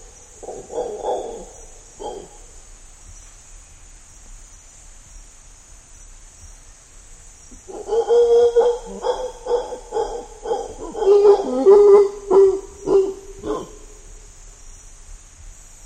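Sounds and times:
mantled howler monkey: 0.0s - 2.7s, 7.5s - 14.2s.

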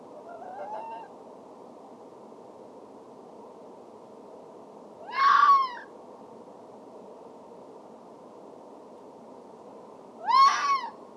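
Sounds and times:
red fox Vulpes vulpes calling: 0.1s - 1.1s, 5.0s - 5.9s, 10.2s - 11.0s.

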